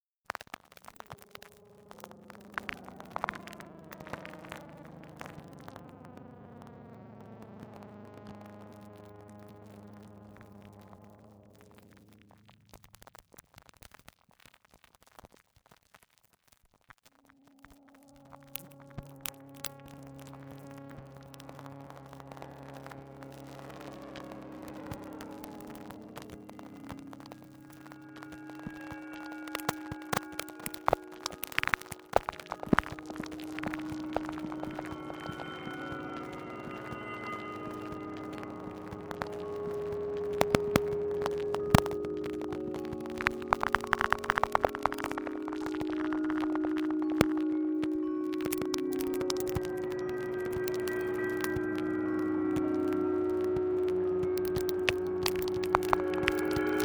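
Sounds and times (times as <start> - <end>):
static: 0.0 - 14.1, 16.8 - 56.8
glockenspiel: 24.3 - 56.8.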